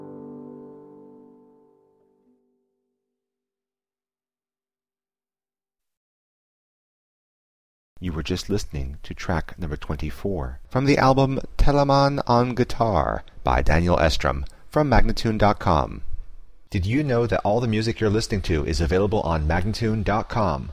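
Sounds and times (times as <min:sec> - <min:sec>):
guitar siciliana: 0:00.0 - 0:02.6
person speaking: 0:08.0 - 0:16.1, 0:16.7 - 0:20.7.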